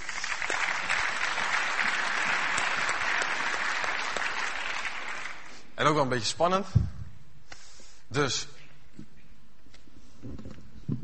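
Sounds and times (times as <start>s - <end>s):
audience applause: 0.0s - 5.6s
speech: 5.8s - 7.0s, 8.1s - 8.6s.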